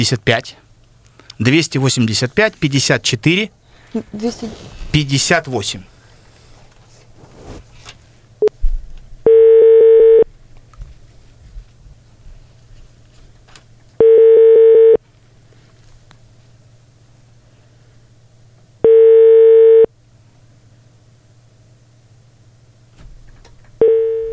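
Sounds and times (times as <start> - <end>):
people talking over a phone call: 0.0 - 0.6, 1.4 - 5.9
long steady telephone line beeps on a call to the city health department hotline: 9.2 - 10.3, 14.0 - 15.0, 18.8 - 19.9, 23.8 - 24.3.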